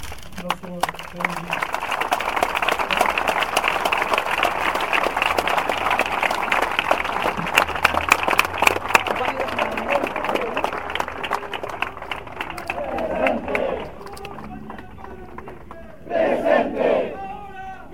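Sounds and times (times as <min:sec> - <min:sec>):
crowd applause in tribute at a memorial gathering: 0:00.4 - 0:17.0.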